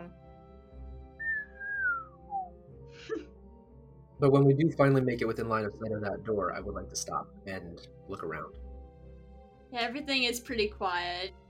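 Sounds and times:
whistled comedic chase tune: 1.2 - 2.6
speech: 4.2 - 8.7, 9.7 - 11.4.

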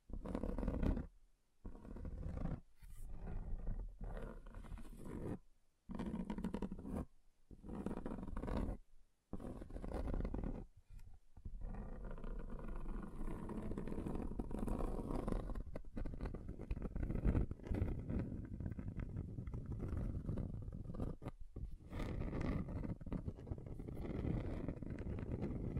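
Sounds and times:
scratching across a table's surface: 0.1 - 25.7.

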